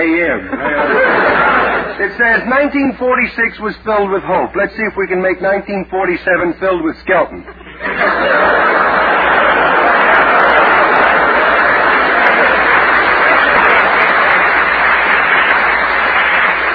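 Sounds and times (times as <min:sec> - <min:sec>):
laughter: 0:00.1 - 0:02.7, 0:07.3 - 0:16.7
speech: 0:00.2 - 0:01.1, 0:02.0 - 0:08.6
audience applause: 0:08.0 - 0:16.7.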